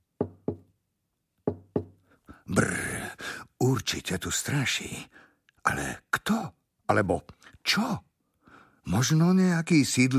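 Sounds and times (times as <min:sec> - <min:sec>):
hollow tapping knocks: 0:00.2 - 0:00.7, 0:01.4 - 0:02.0
speech: 0:03.8 - 0:08.1, 0:08.8 - 0:10.1.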